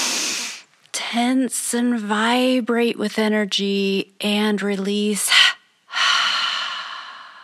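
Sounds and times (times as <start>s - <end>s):
double inhale breathing: 0.0s - 0.6s, 5.9s - 7.4s
speech: 1.1s - 5.4s.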